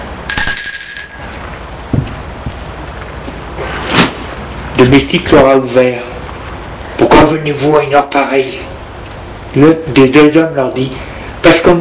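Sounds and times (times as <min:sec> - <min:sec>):
doorbell ringing: 0:00.3 - 0:01.5
speech: 0:04.8 - 0:06.1, 0:07.3 - 0:08.7, 0:09.5 - 0:11.7.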